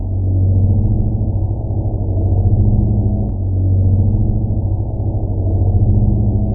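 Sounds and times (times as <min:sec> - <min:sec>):
fan: 0:00.0 - 0:06.5.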